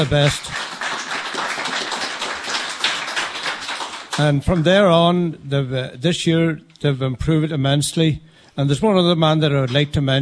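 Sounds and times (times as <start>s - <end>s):
speech: 0.0s - 0.6s, 4.2s - 10.2s
clapping: 0.0s - 4.7s.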